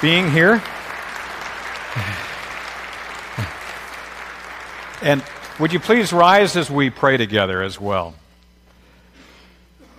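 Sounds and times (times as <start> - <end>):
speech: 0.0 - 0.8, 2.0 - 2.3, 5.0 - 8.2
audience applause: 0.0 - 7.5.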